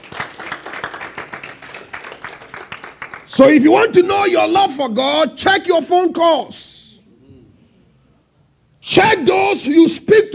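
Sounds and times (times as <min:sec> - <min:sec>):
audience clapping hands: 0:00.0 - 0:03.5
speech: 0:03.4 - 0:06.7, 0:09.0 - 0:10.3.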